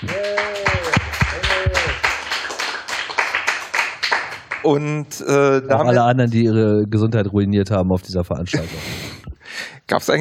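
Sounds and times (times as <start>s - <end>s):
audience applause: 0.0s - 4.7s
speech: 4.6s - 9.0s, 9.9s - 10.1s
laughter: 8.5s - 9.4s.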